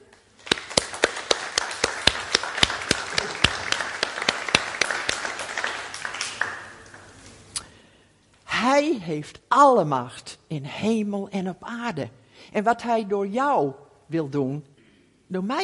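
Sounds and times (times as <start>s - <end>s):
audience applauding: 0.4s - 7.4s
speech: 8.8s - 14.7s, 15.3s - 15.6s.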